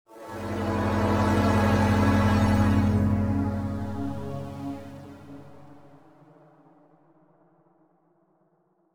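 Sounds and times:
electric wave sound: 0.2s - 5.9s.

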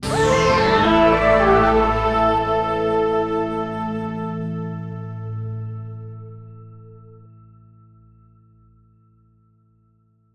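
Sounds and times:
success sound effect: 0.0s - 4.5s.

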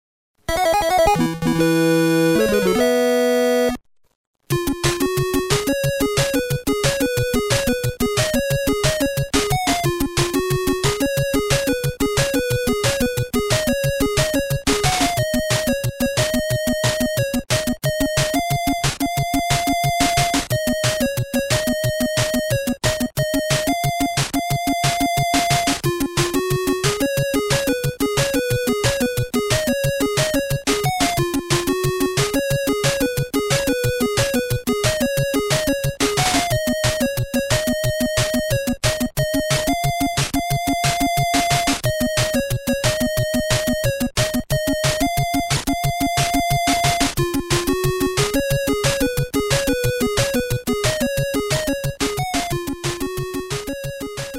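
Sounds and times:
power-up background game music: 0.4s - 3.8s, 4.4s - 54.3s.

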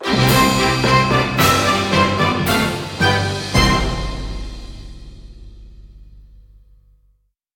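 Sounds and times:
big orchestral win fanfare: 0.0s - 5.4s.

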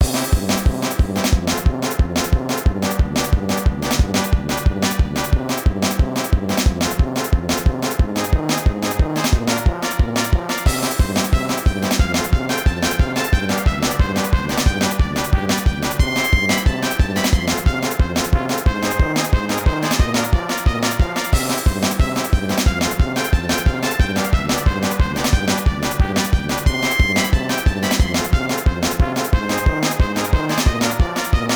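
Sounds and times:
comical dungeon game music: 0.0s - 31.5s.

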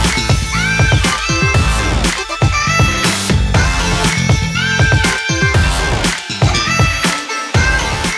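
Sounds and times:
musical stinger: 0.1s - 8.1s.

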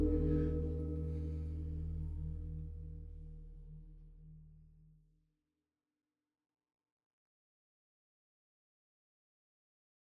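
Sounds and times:
dark scary exploration mood music: 0.0s - 4.0s.

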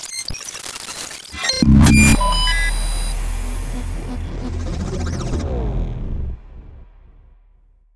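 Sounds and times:
hacking sound effects bed: 1.4s - 6.9s.

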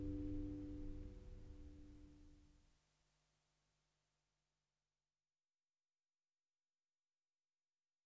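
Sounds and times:
acoustic music: 0.0s - 2.3s.

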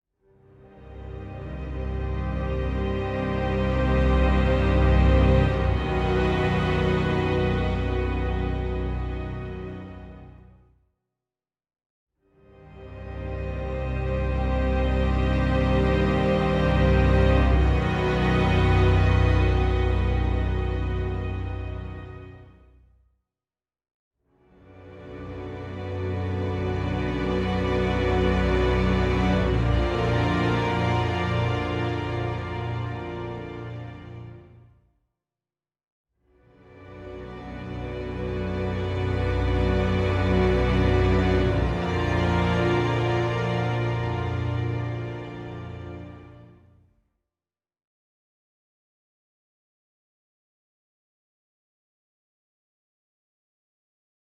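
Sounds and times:
ambient soundtrack music: 0.4s - 10.6s, 12.5s - 22.5s, 24.7s - 34.6s, 36.6s - 46.7s.

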